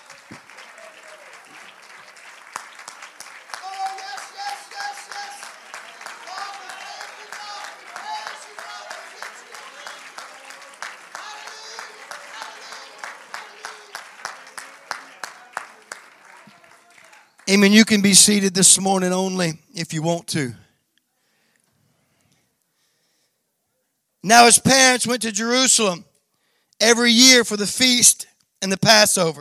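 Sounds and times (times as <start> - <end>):
audience hand clapping: 0.0 - 18.4
speech: 17.5 - 20.6, 24.3 - 26.1, 26.8 - 29.3.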